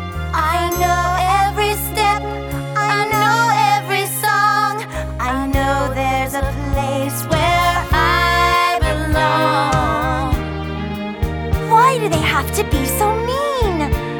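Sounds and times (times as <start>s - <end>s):
vocals: 0.1s - 14.1s.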